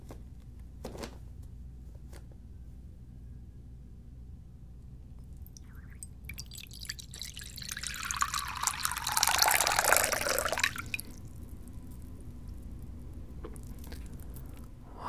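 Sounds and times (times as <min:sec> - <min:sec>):
liquid being poured into a bowl: 0:05.5 - 0:12.1.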